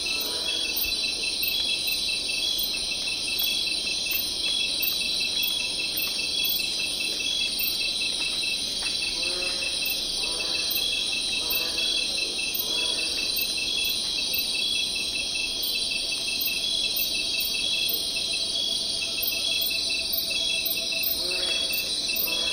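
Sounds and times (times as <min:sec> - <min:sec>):
cricket chirping: 0:00.0 - 0:22.5.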